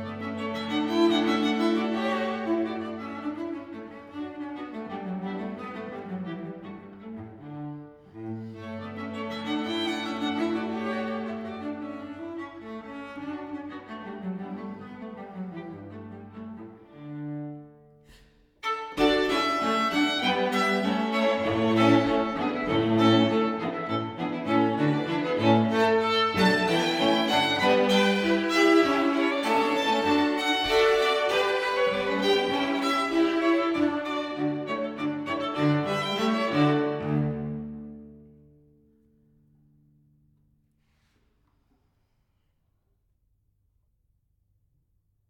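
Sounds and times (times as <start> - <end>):
string quartet playing a minuet in D major: 0.0 - 17.8, 18.6 - 38.4.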